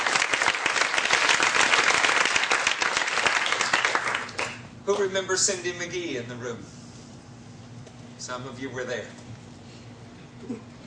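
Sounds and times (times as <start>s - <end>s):
audience hand clapping: 0.0s - 5.1s
speech: 4.9s - 6.8s, 8.2s - 9.3s.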